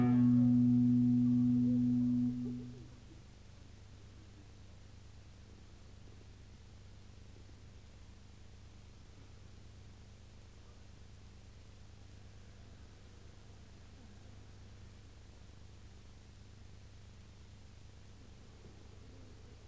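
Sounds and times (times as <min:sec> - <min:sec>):
instruments tuning during a soundcheck: 0:00.0 - 0:02.8.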